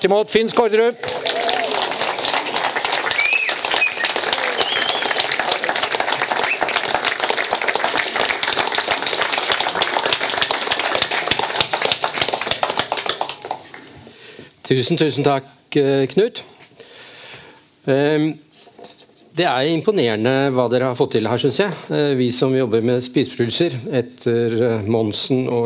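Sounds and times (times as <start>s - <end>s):
speech: 0.0s - 1.2s, 14.7s - 16.5s, 17.8s - 18.5s, 19.4s - 25.6s
audience applause: 0.9s - 14.0s.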